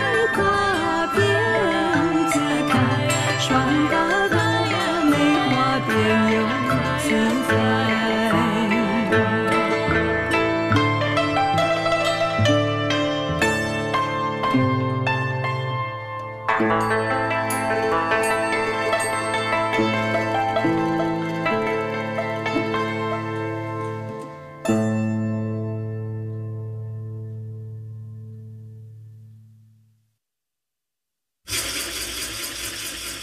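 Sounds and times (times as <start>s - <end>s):
traditional Chinese music: 0.0s - 26.0s.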